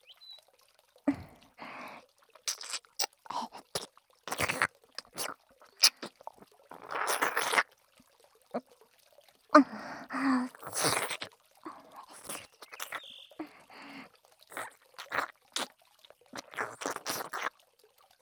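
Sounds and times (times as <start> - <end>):
ASMR ear licking: 1.1 - 7.7, 10.4 - 15.7, 16.4 - 17.5
ASMR ear kissing: 2.5 - 6.1, 6.8 - 7.6, 12.0 - 13.1, 14.5 - 15.7.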